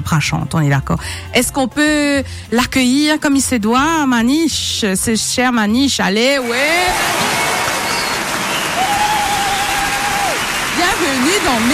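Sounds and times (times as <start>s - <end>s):
speech: 0.0s - 7.4s, 11.4s - 11.7s
dense crowd applause: 6.6s - 11.7s.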